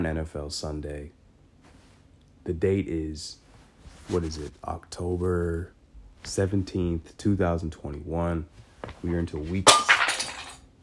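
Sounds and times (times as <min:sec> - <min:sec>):
speech: 0:00.0 - 0:01.2, 0:02.4 - 0:03.4, 0:04.1 - 0:09.9
pen dropping: 0:09.7 - 0:10.6.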